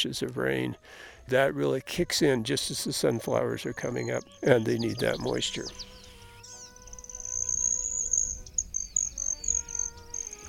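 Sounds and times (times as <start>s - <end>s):
speech: 0.0s - 6.0s
hummingbird flyby metallic trill: 4.0s - 10.4s.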